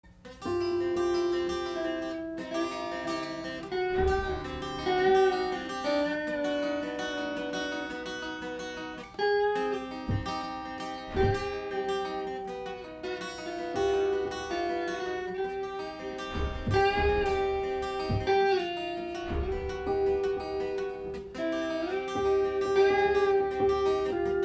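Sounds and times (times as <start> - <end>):
acoustic ditty: 0.0 - 24.4.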